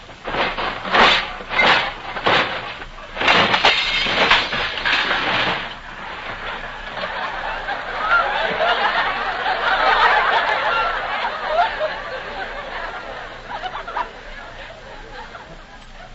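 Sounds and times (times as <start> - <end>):
man tripping over toy train and crashing: 0.0 - 8.8
laughter: 6.5 - 16.1.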